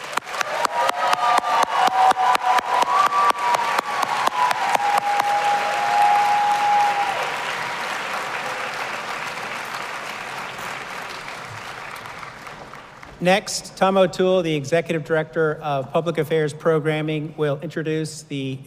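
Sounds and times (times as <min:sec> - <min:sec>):
many hands clapping for graduates: 0:00.0 - 0:13.3
whistles and cheers: 0:00.2 - 0:08.8
speech: 0:13.2 - 0:18.6.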